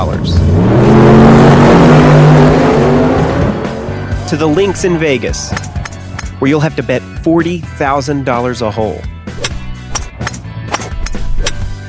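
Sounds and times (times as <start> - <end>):
speech: 0.0 - 0.7, 4.3 - 5.8, 6.4 - 9.1
drag racing car engine revving on a Florida drag strip: 0.0 - 6.2.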